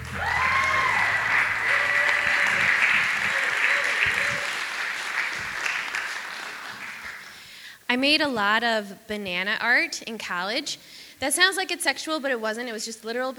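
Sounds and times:
audience applause: 0.0 - 7.4
speech: 7.9 - 13.3.

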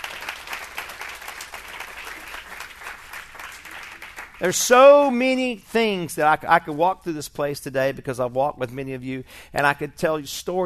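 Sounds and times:
audience hand clapping applause: 0.0 - 5.0
speech: 4.4 - 10.6.

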